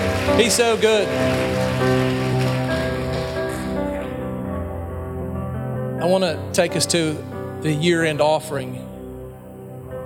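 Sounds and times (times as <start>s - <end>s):
audience clapping: 0.0s - 4.4s
speech: 0.3s - 2.3s, 6.0s - 8.9s.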